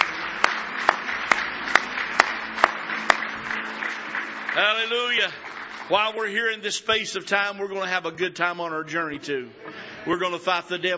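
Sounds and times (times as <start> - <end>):
audience clapping hands in praise: 0.0 - 7.0
speech: 4.8 - 10.9.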